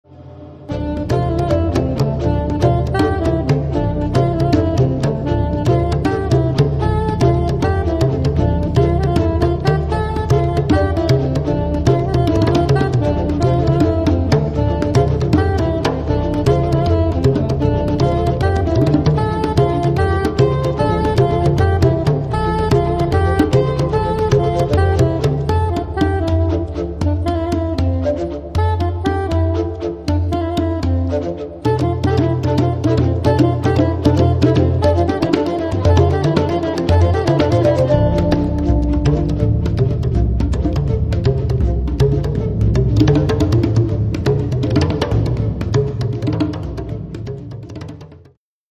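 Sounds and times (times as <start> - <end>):
raga blues music: 0.7 - 47.9.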